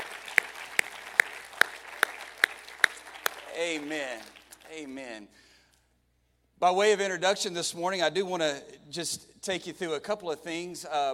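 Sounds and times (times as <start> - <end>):
audience clapping: 0.0 - 5.1
speech: 3.6 - 5.5, 6.6 - 11.1.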